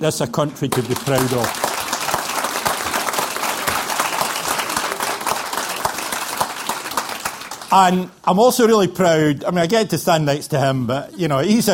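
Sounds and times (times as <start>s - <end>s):
speech: 0.0s - 1.6s, 7.7s - 11.7s
audience applause: 0.7s - 8.0s.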